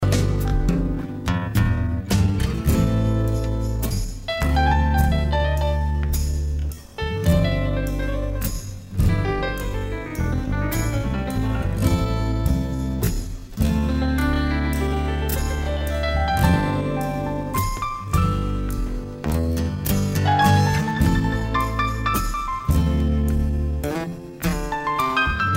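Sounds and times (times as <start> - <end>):
solo piano: 0.0 - 25.5.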